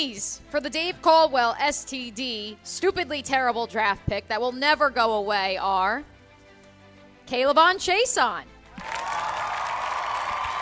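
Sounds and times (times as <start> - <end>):
speech: 0.0 - 6.1, 7.3 - 9.0
crowd cheering: 8.7 - 10.6.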